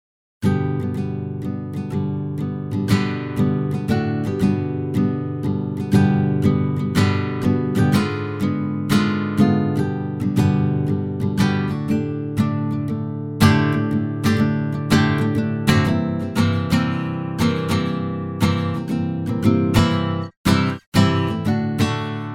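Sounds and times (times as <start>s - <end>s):
nylon-string guitar strumming chord voicings: 0.4s - 22.3s.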